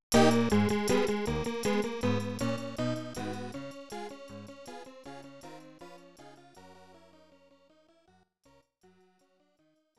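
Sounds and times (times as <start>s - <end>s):
SNES casino win jingle: 0.1s - 4.5s.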